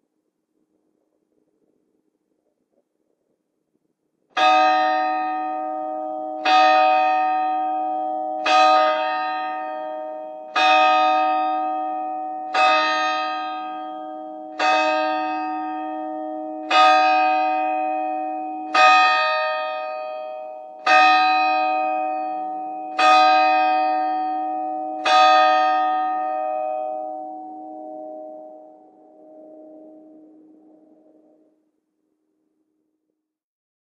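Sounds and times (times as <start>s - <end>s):
tower clock chimes from bell towers exterior: 4.4s - 31.4s.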